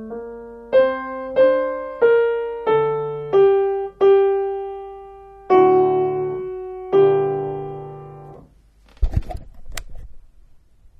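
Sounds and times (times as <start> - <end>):
alto piano: 0.0 - 8.8.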